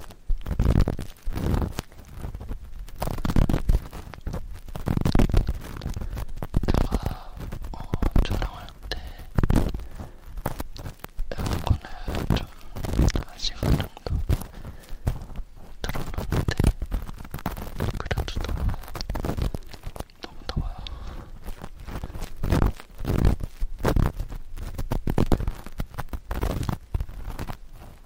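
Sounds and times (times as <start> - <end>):
sticky ear pick and cotton swab ear cleaning scratching: 0.0 - 28.0
soft whispering: 5.0 - 22.8.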